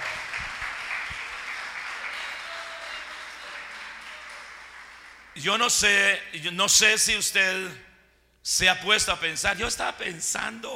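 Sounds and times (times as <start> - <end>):
audience applause: 0.0 - 5.4
speech: 5.4 - 10.7.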